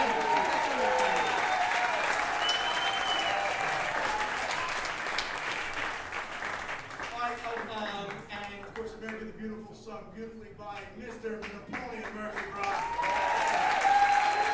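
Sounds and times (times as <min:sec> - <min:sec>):
audience applause: 0:00.0 - 0:08.8, 0:11.7 - 0:14.5.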